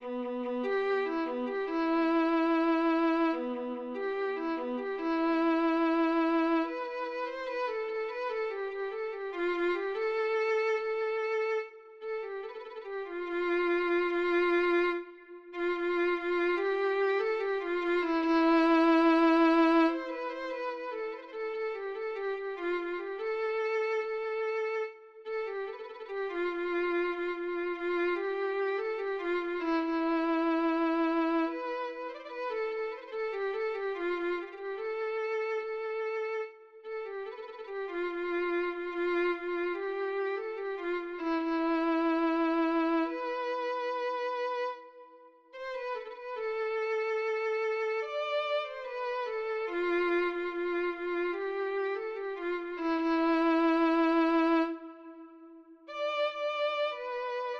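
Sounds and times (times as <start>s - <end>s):
violin: 0.0s - 57.5s.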